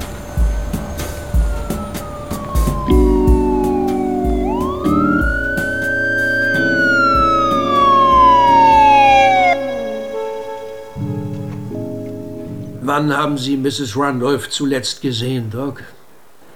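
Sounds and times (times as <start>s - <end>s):
police car siren: 0.0s - 11.5s
low horn-like blasts: 0.0s - 13.5s
police car engine rumbling: 0.0s - 14.0s
speech: 13.0s - 16.0s.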